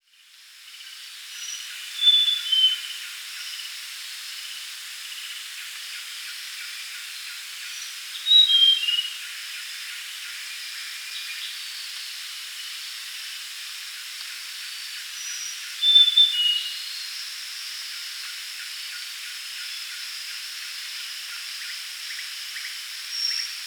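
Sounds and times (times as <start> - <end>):
grey-chested jungle flycatcher whistling song: 1.4 - 2.9, 8.2 - 9.2, 15.8 - 16.9.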